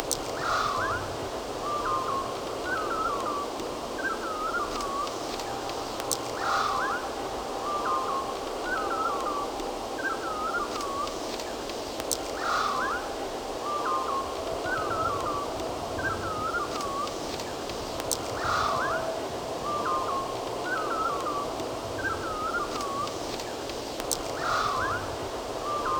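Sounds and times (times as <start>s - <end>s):
backyard birds singing short warbled phrases: 0.0s - 25.9s.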